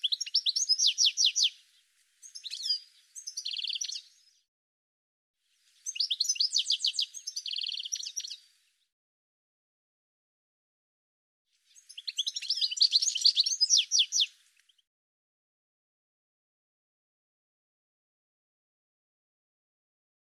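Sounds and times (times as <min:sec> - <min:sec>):
bird chirping: 0:00.0 - 0:04.5, 0:05.7 - 0:08.9, 0:11.6 - 0:14.9.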